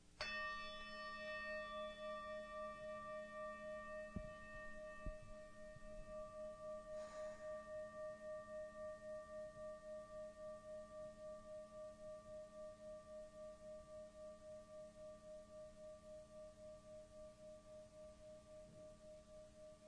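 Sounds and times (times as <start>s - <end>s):
meditation bell ringing: 0.2s - 19.8s
soft thumps: 4.1s - 6.1s.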